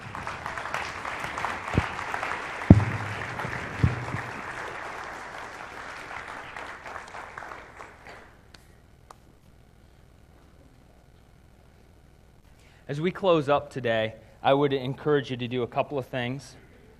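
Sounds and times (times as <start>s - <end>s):
audience applause: 0.0s - 8.3s
speech: 12.9s - 16.6s.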